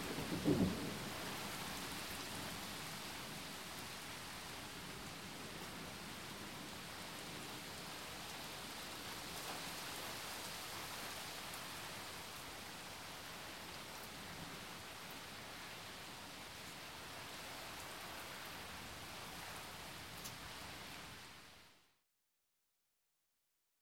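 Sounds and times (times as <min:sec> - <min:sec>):
thunder: 0:00.0 - 0:01.6
medium rain on pavement: 0:00.0 - 0:21.6.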